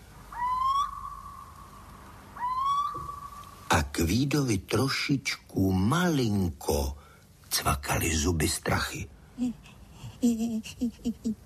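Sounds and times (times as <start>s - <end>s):
little owl calling: 0.2s - 3.7s
speech: 4.0s - 7.0s, 7.6s - 11.4s.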